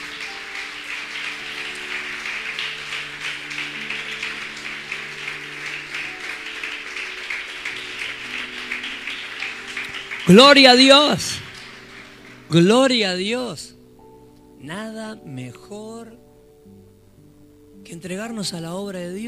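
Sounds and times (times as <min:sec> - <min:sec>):
audience applause: 0:00.0 - 0:13.5
speech: 0:10.3 - 0:11.4, 0:12.5 - 0:13.8, 0:14.6 - 0:16.8, 0:17.9 - 0:19.2.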